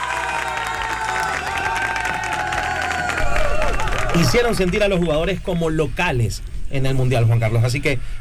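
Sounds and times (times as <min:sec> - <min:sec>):
crowd applause and cheering: 0:00.0 - 0:05.8
speech: 0:04.2 - 0:08.1.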